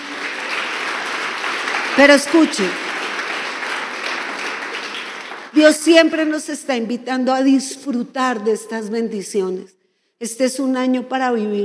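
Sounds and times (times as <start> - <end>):
crowd applause: 0.0 - 5.6
speech: 2.0 - 2.9, 5.5 - 11.6.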